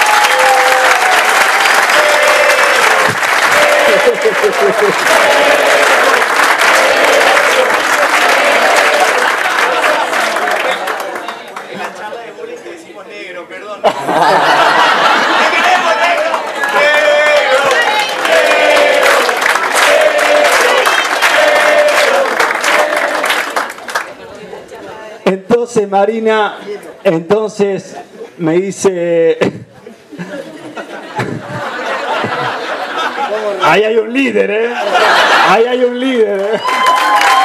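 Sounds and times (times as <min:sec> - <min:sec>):
audience applause: 0:00.0 - 0:12.0, 0:14.0 - 0:24.2, 0:36.4 - 0:37.4
laughter: 0:01.6 - 0:12.2, 0:13.8 - 0:18.1, 0:29.5 - 0:33.9, 0:34.6 - 0:36.8
speech: 0:04.0 - 0:05.3, 0:25.8 - 0:29.7, 0:33.4 - 0:37.3.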